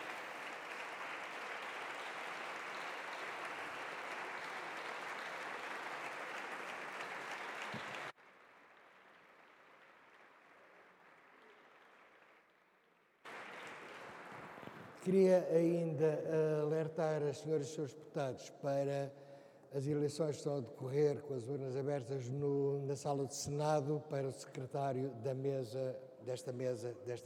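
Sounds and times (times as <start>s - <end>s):
applause in parliament chamber: 0.0s - 15.8s
speech: 15.1s - 27.2s.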